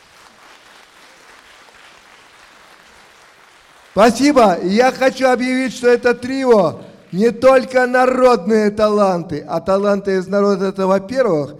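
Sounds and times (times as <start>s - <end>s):
audience applause: 0.0s - 5.1s, 6.4s - 7.7s
speech: 4.0s - 11.5s.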